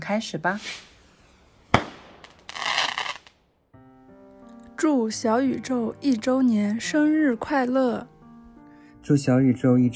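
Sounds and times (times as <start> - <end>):
speech: 0.1 - 0.9, 4.8 - 8.1, 9.1 - 9.9
fireworks bursting: 1.6 - 3.4.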